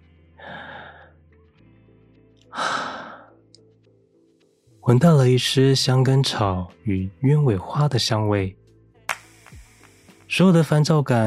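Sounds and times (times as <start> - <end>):
deep breathing: 0.4 - 1.2, 2.5 - 3.4
speech: 4.8 - 8.6, 10.3 - 11.2.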